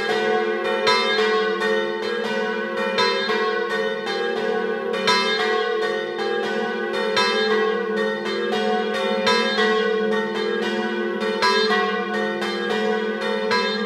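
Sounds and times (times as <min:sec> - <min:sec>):
bells ringing: 0:00.0 - 0:13.8.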